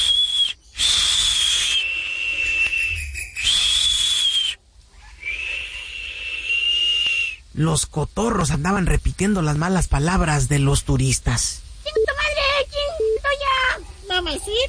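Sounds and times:
toucans whistling from branches: 0.0s - 7.4s
steady hissing background: 0.0s - 14.6s
speech: 7.6s - 11.6s.

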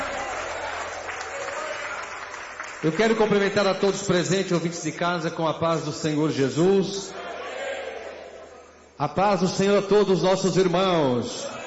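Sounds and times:
church congregation applauding in glory to God: 0.0s - 4.7s
speech: 2.8s - 7.3s, 9.0s - 11.6s.

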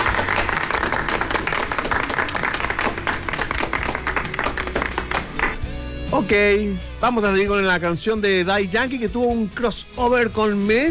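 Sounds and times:
applause: 0.0s - 5.7s
speech: 6.2s - 10.8s.

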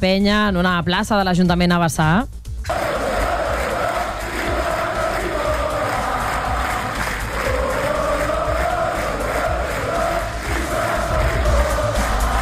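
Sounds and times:
speech: 0.0s - 2.4s
fans chanting and cheering in town square: 2.7s - 12.4s.

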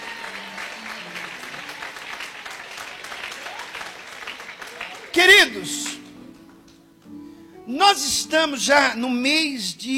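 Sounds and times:
audience applauding: 0.0s - 6.0s
speech: 5.2s - 5.9s, 7.7s - 9.9s.

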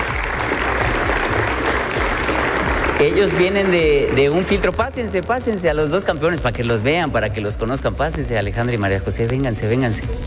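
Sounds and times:
audience applause for champions: 0.0s - 4.8s
speech: 3.0s - 10.2s.

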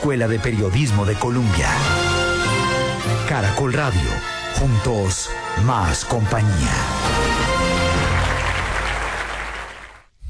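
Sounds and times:
speech: 0.0s - 2.1s, 3.1s - 7.2s
newsroom staff applauding: 6.6s - 10.1s.

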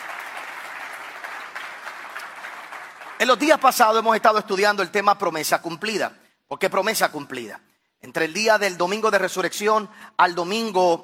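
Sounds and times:
audience applauding: 0.0s - 4.0s
speech: 3.2s - 11.0s.

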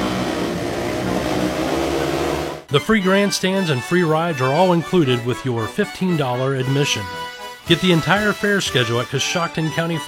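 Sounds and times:
demolition derby cars revving engines at the Coshocton County Fair: 0.0s - 2.7s
speech: 2.7s - 10.0s.

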